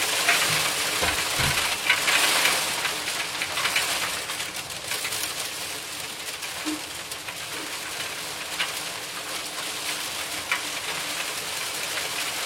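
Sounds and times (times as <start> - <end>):
hail falling: 0.0 - 12.4
low thumps: 1.0 - 1.7.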